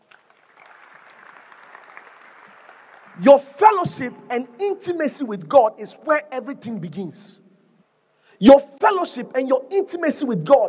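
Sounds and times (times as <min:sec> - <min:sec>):
audience clapping: 0:00.0 - 0:03.8
speech: 0:03.2 - 0:07.4, 0:08.4 - 0:10.6.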